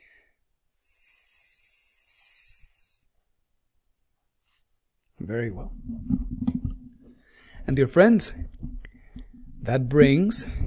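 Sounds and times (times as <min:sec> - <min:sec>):
person chanting a hissing S mantra: 0:00.7 - 0:03.0
speech: 0:05.2 - 0:06.8, 0:07.7 - 0:08.7, 0:09.6 - 0:10.6.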